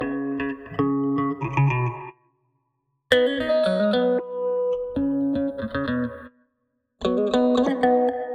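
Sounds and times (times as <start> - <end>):
E major guitar: 0.0 - 2.2, 3.1 - 6.3, 7.0 - 8.3.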